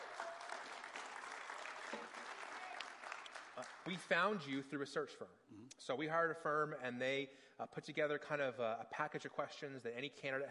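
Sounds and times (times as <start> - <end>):
round of applause from audience: 0.0 - 4.2
speech: 3.6 - 10.4.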